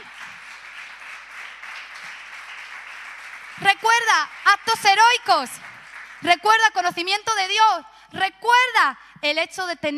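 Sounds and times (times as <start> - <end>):
crowd applause: 0.0 - 4.9, 5.6 - 6.2
speech: 3.6 - 9.9.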